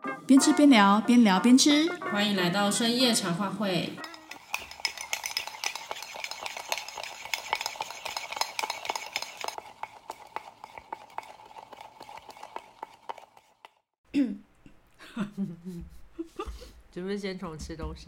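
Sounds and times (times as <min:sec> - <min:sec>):
speech: 0:00.3 - 0:04.1, 0:16.9 - 0:18.0
spoon stirring a drink in a cup: 0:03.9 - 0:13.8.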